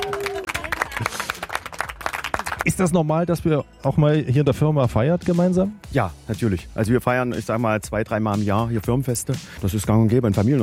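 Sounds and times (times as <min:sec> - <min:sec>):
office employees applauding at a company celebration: 0:00.0 - 0:03.0
speech: 0:02.6 - 0:10.6.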